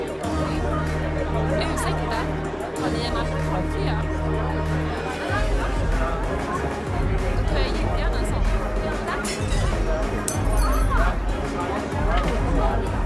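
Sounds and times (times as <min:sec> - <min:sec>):
bar crowd babble: 0:00.0 - 0:13.0
glasses clinking: 0:10.3 - 0:11.0.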